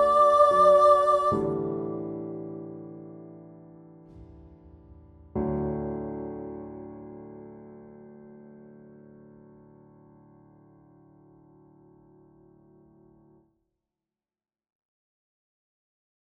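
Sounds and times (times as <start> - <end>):
soprano singing: 0.0 - 3.2.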